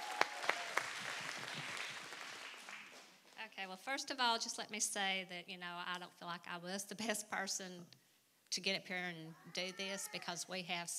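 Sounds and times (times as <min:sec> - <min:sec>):
audience applause: 0:00.0 - 0:03.1
speech: 0:03.6 - 0:10.9.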